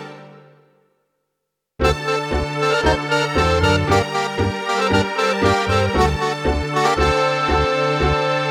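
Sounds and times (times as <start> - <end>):
tango on guitar: 1.8 - 8.4.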